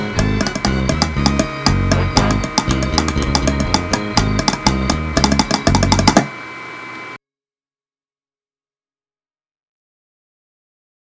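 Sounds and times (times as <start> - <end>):
bass: 0.0 - 6.3
Pringles can used as percussion: 0.3 - 6.3.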